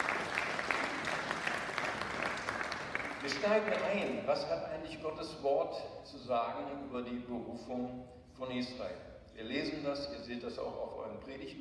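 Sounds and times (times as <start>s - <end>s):
audience applause: 0.0s - 4.2s
speech: 3.3s - 11.5s.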